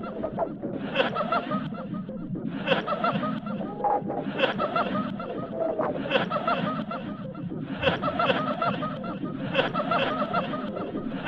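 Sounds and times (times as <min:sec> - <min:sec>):
audience laughing in a theatre: 0:00.8 - 0:01.9, 0:02.6 - 0:11.2.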